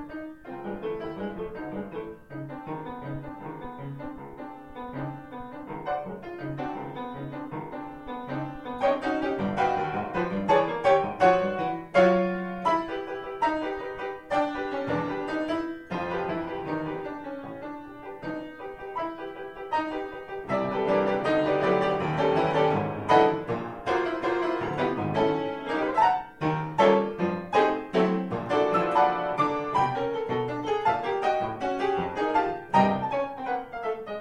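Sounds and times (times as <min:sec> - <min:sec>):
piano rag music: 0:00.0 - 0:34.2.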